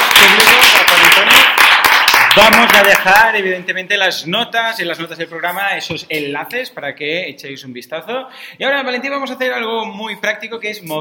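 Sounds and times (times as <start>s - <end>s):
audience applause: 0.0s - 3.3s
speech: 2.4s - 11.0s.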